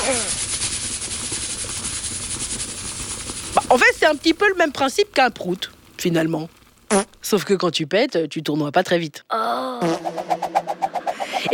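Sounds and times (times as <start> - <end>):
pressure cooker releasing steam: 0.0 - 4.5
speech: 3.7 - 10.6.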